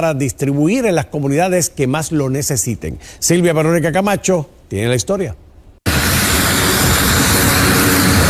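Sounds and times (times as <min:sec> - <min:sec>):
speech: 0:00.0 - 0:05.4
airplane carrying aid supplies from Puerto Rico to Venezuela taking off: 0:05.8 - 0:08.2.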